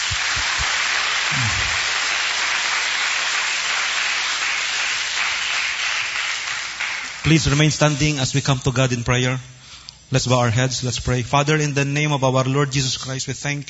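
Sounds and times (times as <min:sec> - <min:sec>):
congregation clapping in church: 0:00.0 - 0:08.2
speech: 0:07.3 - 0:13.6.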